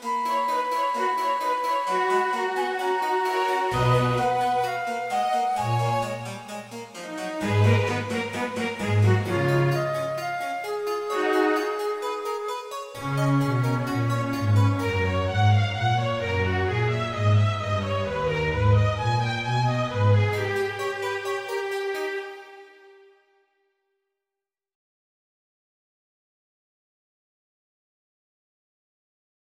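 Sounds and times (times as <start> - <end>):
Baroque sarabande: 0.0 - 23.0.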